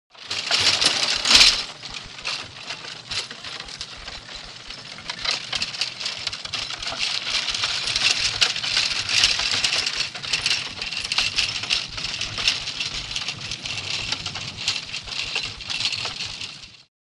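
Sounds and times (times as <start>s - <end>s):
donkey and cart moving on gravel: 0.1s - 16.9s.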